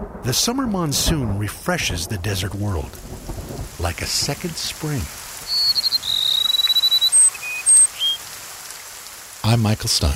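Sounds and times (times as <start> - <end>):
speech: 0.3 - 3.1, 3.8 - 5.2, 9.5 - 10.1
rufous-winged sparrow song: 5.4 - 8.4.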